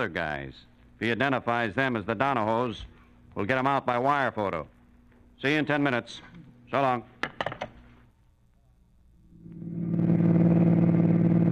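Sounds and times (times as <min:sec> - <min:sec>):
speech: 0:00.0 - 0:04.8, 0:05.4 - 0:07.1
car engine droning while driving toward Kansas City: 0:09.3 - 0:11.5.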